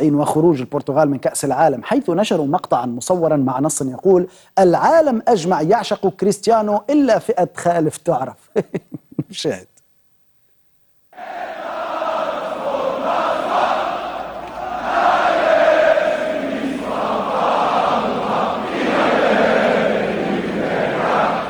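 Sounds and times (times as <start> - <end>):
speech: 0.0 - 9.7
football fans cheering and chanting: 11.2 - 21.4.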